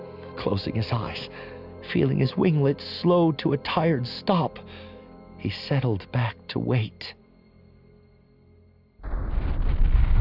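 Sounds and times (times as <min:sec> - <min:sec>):
speech: 0:00.4 - 0:07.2
Kilji cruiser exploding after a breacher's impact: 0:09.0 - 0:10.1.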